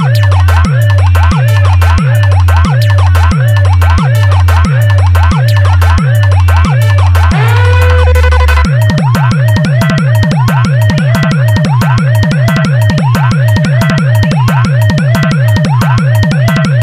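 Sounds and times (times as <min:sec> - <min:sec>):
humming bass: 0:00.0 - 0:16.8
ambulance horn: 0:07.3 - 0:08.7.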